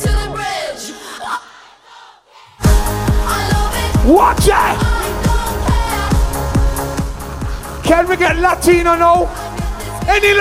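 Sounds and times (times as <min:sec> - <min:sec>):
large live crowd singing along in unison: 0:00.0 - 0:10.3
crowd cheering: 0:01.9 - 0:08.4
speech: 0:04.1 - 0:05.0, 0:07.9 - 0:09.4, 0:10.1 - 0:10.3.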